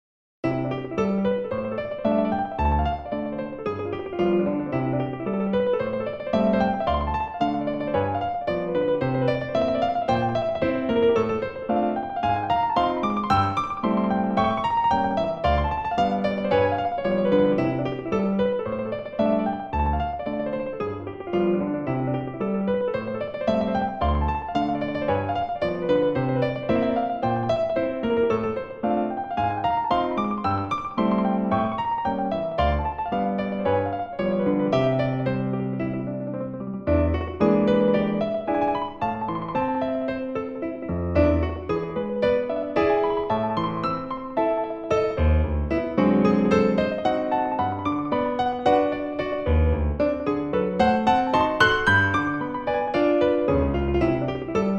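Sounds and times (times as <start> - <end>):
jazz etude: 0.4 - 54.7.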